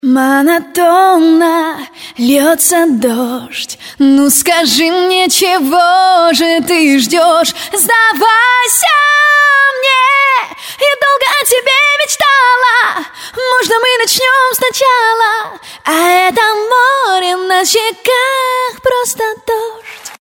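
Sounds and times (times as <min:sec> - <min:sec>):
a cappella singing: 0:00.0 - 0:20.1.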